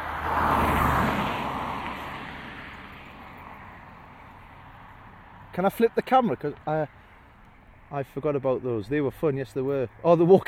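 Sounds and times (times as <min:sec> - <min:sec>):
car passing by: 0:00.0 - 0:06.0
speech: 0:05.6 - 0:07.0, 0:07.9 - 0:10.4.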